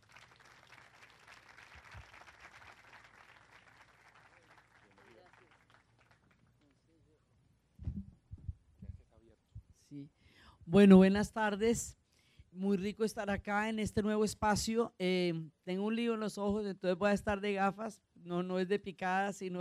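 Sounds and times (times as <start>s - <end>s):
audience applause: 0.0s - 6.5s
speech: 9.9s - 12.0s, 12.6s - 19.5s.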